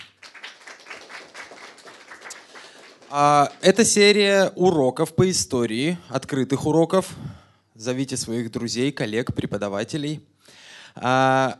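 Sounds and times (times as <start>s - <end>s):
audience applause: 0.0s - 3.9s
speech: 3.1s - 11.5s.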